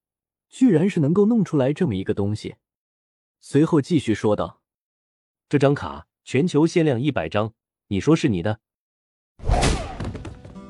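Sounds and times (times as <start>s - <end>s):
speech: 0.5s - 2.7s, 3.4s - 4.6s, 5.5s - 8.6s
punch to the stomach: 9.4s - 10.6s.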